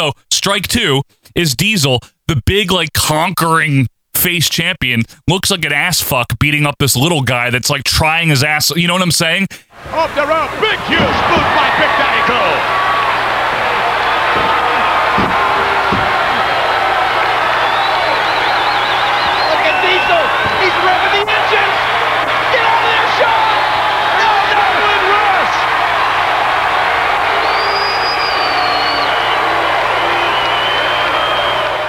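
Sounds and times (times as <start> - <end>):
speech: 0.0 - 12.8
capacity crowd cheering at wrestling match: 9.7 - 31.8.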